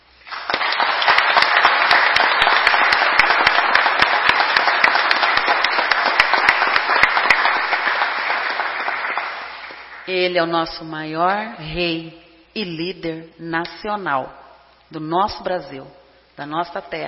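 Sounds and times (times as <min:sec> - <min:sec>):
audience applause: 0:00.2 - 0:10.1
speech: 0:10.2 - 0:17.0.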